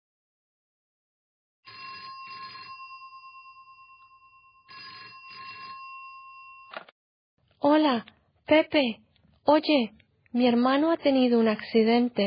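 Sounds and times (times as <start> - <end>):
ring tones on an outgoing phone call: 1.7 - 6.8
speech: 7.6 - 12.2.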